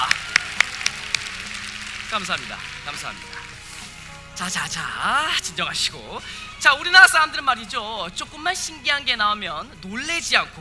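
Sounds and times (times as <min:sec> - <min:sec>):
audience applause: 0:00.0 - 0:03.7
speech: 0:02.1 - 0:03.4, 0:04.4 - 0:10.5.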